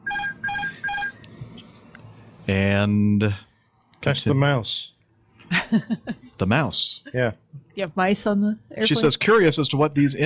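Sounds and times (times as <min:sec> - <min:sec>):
repetitive airliner cockpit beeps during landing: 0:00.0 - 0:01.3
speech: 0:02.5 - 0:04.9, 0:05.5 - 0:10.2.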